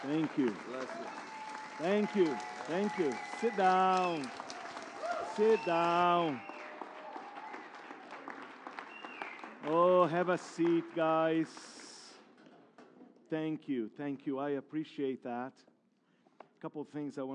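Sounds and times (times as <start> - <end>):
speech: 0.0 - 4.4, 5.4 - 6.5, 9.6 - 11.8, 13.3 - 15.7, 16.6 - 17.3
standing ovation applause: 0.0 - 12.2.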